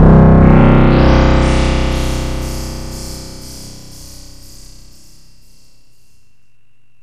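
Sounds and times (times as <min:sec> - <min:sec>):
electronic bleeps and bloops: 0:00.2 - 0:05.6.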